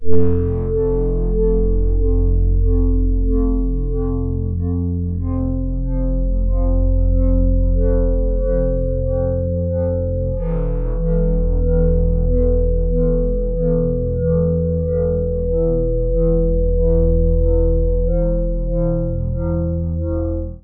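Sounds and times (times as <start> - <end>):
polyphonic synth: 0.0 - 20.6.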